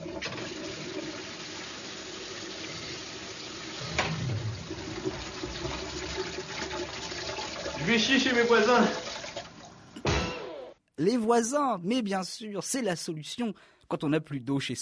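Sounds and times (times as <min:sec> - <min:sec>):
toilet flushing: 0:00.0 - 0:10.0
speech: 0:07.9 - 0:09.0, 0:11.0 - 0:14.8.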